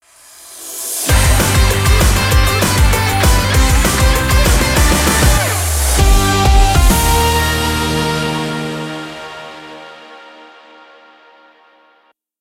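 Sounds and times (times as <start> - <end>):
rock jingle: 1.0 - 10.8.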